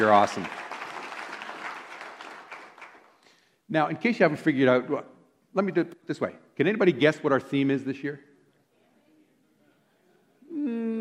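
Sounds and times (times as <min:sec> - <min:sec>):
speech: 0:00.0 - 0:00.6, 0:03.7 - 0:08.3
crowd applauding: 0:00.0 - 0:03.3.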